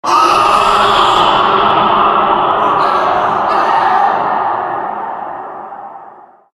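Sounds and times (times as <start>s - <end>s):
man screaming for Halloween: 0.0s - 4.7s.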